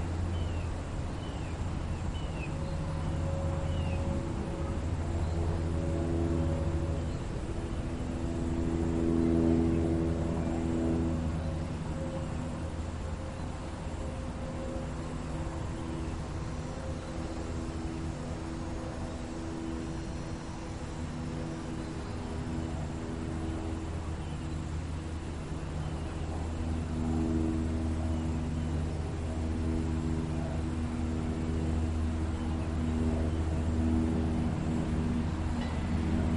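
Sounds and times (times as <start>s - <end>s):
several aircraft flying by over a residence in the early morning: 0.0s - 36.3s.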